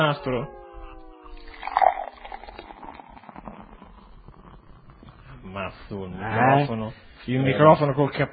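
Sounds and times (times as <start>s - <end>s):
speech: 0.0s - 0.6s, 5.5s - 8.3s
beer poured into a glass: 0.8s - 5.4s.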